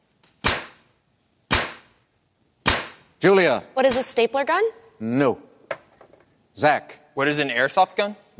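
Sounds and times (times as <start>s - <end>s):
nail gun firing: 0.4s - 0.8s, 1.5s - 1.9s, 2.6s - 3.0s
speech: 3.2s - 5.5s, 6.6s - 8.3s.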